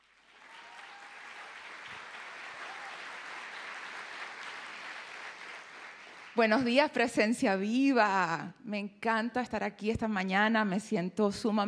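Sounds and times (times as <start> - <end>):
audience applause: 0.0 - 6.7
speech: 6.4 - 11.6.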